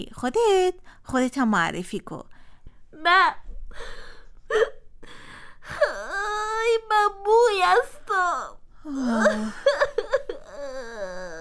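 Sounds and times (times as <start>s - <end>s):
speech: 0.0s - 2.3s, 3.0s - 10.0s
child crying: 5.7s - 11.3s.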